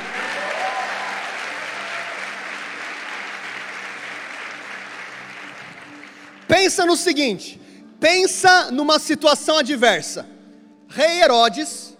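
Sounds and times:
audience applauding: 0.0s - 6.9s
speech: 6.5s - 11.8s.

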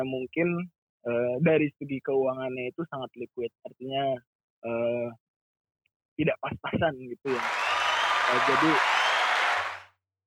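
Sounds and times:
speech: 0.0s - 5.2s, 6.2s - 7.7s, 8.3s - 9.0s
audience applause: 7.3s - 9.9s.

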